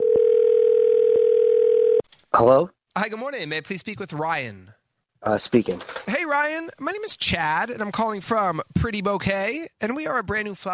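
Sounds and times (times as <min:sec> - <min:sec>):
telephone dial tone: 0:00.0 - 0:02.0
speech: 0:02.4 - 0:10.7.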